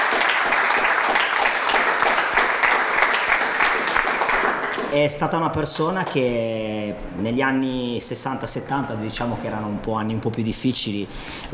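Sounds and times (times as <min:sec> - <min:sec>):
audience applause: 0:00.0 - 0:05.0
speech: 0:05.0 - 0:11.5.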